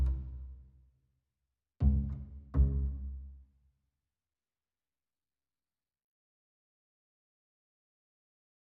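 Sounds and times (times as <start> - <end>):
bass: 0.0 - 0.7, 1.8 - 3.3.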